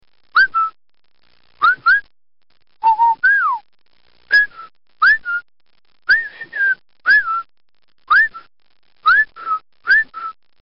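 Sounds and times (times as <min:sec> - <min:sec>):
whistle: 0:00.4 - 0:00.8, 0:01.6 - 0:02.0, 0:02.8 - 0:03.6, 0:04.3 - 0:05.4, 0:06.1 - 0:07.5, 0:08.1 - 0:10.4.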